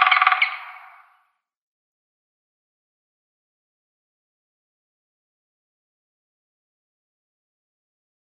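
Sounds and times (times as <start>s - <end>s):
grey-headed woodpecker drumming: 0.0s - 1.0s.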